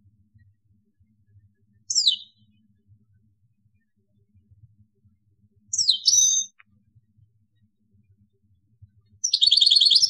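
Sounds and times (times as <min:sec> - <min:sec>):
European goldfinch call: 0:01.9 - 0:02.3, 0:05.7 - 0:06.5, 0:09.2 - 0:10.0.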